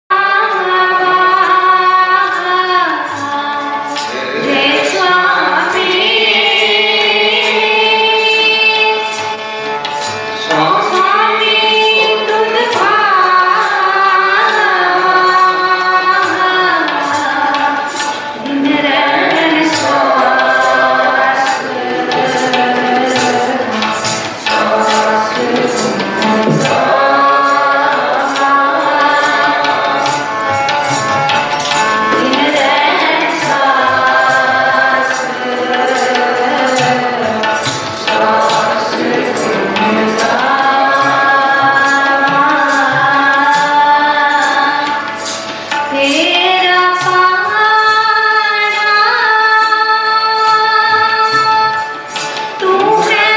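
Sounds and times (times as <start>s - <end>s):
Keertan devotional singing: 0.1s - 53.3s.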